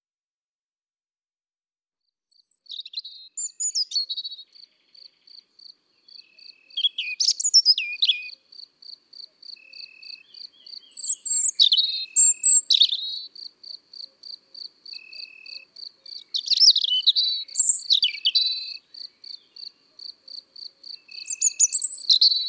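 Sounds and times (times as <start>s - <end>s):
European robin song: 2.2s - 22.4s.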